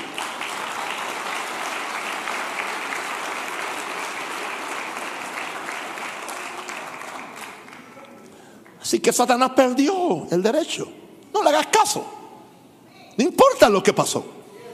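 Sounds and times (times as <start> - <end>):
audience applause: 0.0 - 8.7
speech: 8.9 - 12.2, 13.2 - 14.4.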